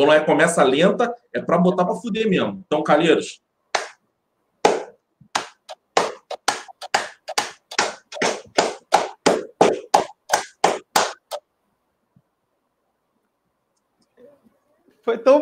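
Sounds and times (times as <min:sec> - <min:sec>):
speech: 0:00.0 - 0:03.4, 0:15.1 - 0:15.4
one person's slow clap building up: 0:04.7 - 0:11.4.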